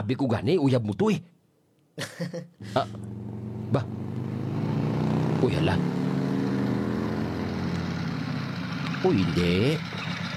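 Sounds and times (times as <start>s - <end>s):
speech: 0.0s - 1.4s, 2.0s - 4.2s, 5.4s - 6.0s, 9.0s - 10.2s
motorized tricycle engine stopping nearby: 6.5s - 10.3s.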